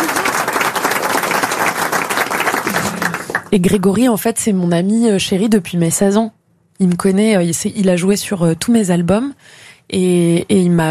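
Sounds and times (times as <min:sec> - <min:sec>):
applause: 0:00.0 - 0:03.6
speech: 0:03.5 - 0:10.8.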